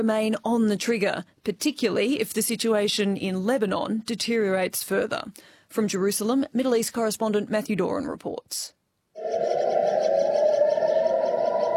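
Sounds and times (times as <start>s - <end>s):
speech: 0.0s - 9.6s
warning sirens across the holy city: 9.2s - 11.7s.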